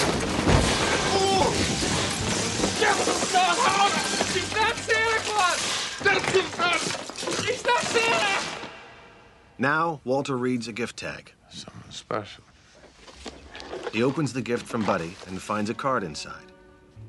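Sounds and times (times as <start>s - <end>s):
two men crashing through tables holding models: 0.0s - 8.8s
speech: 9.6s - 12.5s, 13.9s - 16.5s.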